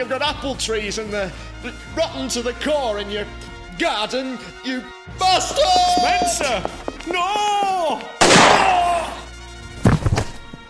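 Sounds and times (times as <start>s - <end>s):
speech: 0.0s - 8.8s
gunshot in a comedy drama scene: 8.2s - 9.2s.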